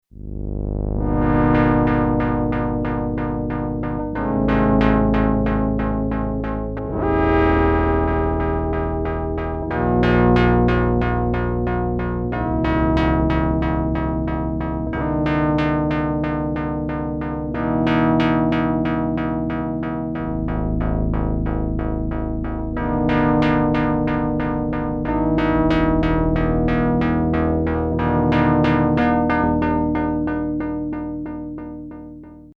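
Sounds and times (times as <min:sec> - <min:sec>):
LFO-modulated synth bass: 0:00.1 - 0:32.5.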